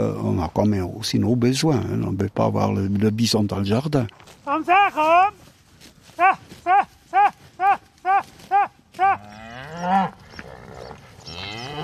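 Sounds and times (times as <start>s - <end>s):
speech: 0.0s - 5.4s, 6.2s - 10.2s
herd of cows mooing: 8.5s - 11.8s.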